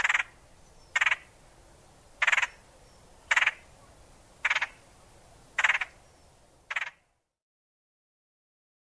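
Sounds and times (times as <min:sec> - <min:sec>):
red-headed woodpecker harsh squeals, rasping notes and churring: 0:00.0 - 0:01.3, 0:02.2 - 0:02.6, 0:03.3 - 0:03.7, 0:04.4 - 0:04.8, 0:05.6 - 0:06.0, 0:06.7 - 0:07.0.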